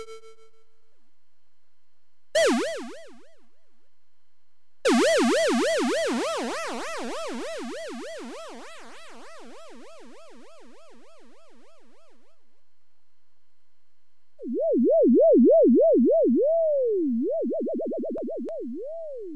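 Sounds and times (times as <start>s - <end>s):
synth: 2.4s - 3.4s, 4.9s - 12.4s, 14.4s - 19.3s.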